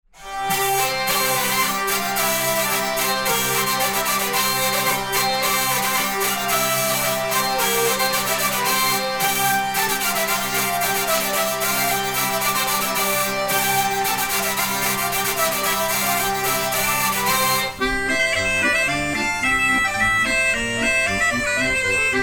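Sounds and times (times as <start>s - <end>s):
polka music: 0.2s - 22.2s.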